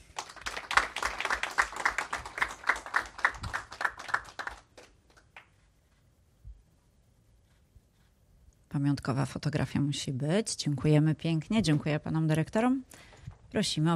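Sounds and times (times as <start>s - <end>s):
audience applause: 0.0s - 5.5s
speech: 8.8s - 13.9s.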